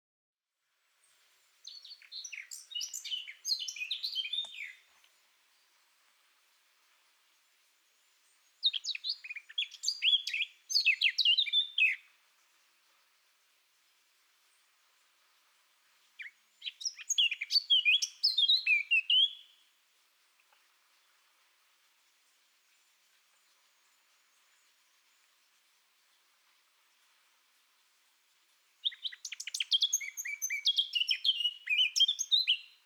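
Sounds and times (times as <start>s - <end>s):
Eurasian blackcap song: 1.6s - 4.9s, 8.6s - 12.1s, 16.2s - 19.5s, 28.8s - 32.8s.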